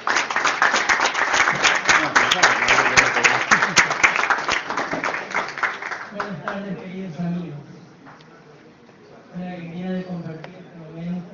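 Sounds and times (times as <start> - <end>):
audience applause: 0.0 - 6.6.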